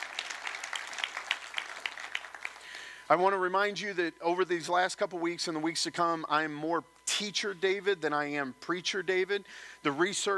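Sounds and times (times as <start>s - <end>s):
audience applause: 0.0s - 3.0s
speech: 3.1s - 10.3s.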